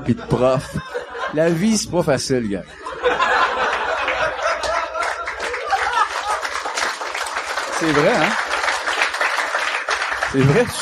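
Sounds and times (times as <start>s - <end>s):
audience laughter: 0.0s - 1.6s, 2.7s - 6.8s, 10.2s - 10.8s
speech: 0.0s - 3.2s, 7.8s - 8.5s, 10.3s - 10.8s
audience applause: 3.5s - 10.8s.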